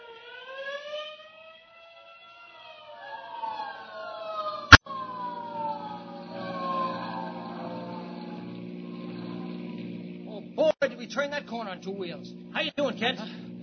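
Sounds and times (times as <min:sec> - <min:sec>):
fire engine siren passing in street: 0:00.0 - 0:10.6
speech: 0:11.0 - 0:13.4.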